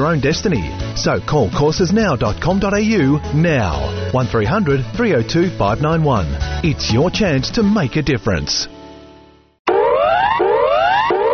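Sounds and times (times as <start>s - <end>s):
speech: 0.1s - 8.8s
bushfire alert warning siren: 9.7s - 11.3s.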